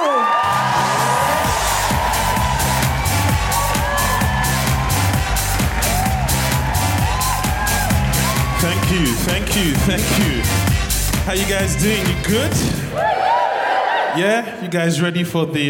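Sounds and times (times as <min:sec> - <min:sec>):
audience whooping and cheering at an Amnesty International comedy benefit show: 0:00.0 - 0:10.4, 0:12.6 - 0:14.2
speech: 0:09.4 - 0:13.3, 0:14.1 - 0:15.6.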